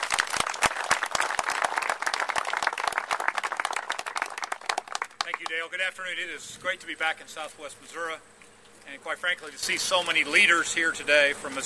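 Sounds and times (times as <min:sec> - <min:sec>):
audience applause welcoming Governor Jay Nixon: 0:00.0 - 0:05.6
speech: 0:05.5 - 0:08.3, 0:08.9 - 0:11.6.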